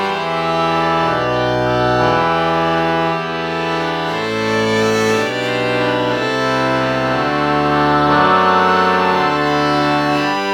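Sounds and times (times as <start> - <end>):
oboe morphing into violin: 0.2 - 10.5.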